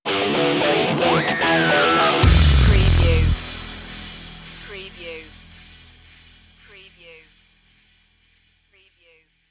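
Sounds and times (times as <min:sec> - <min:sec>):
beat stinger: 0:01.1 - 0:07.0.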